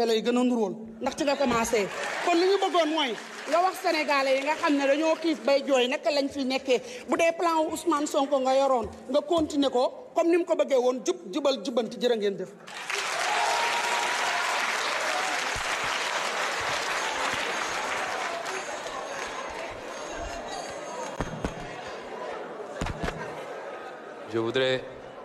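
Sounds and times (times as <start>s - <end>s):
speech: 0.0s - 13.0s, 24.4s - 24.9s
audience applause: 1.5s - 5.4s, 12.7s - 21.8s
crowd voices: 14.8s - 25.2s.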